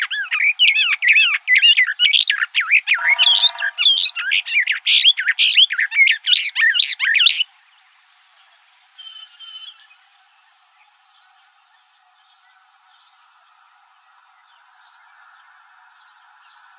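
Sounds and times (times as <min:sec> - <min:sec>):
mimid bird call: 0:00.1 - 0:07.3.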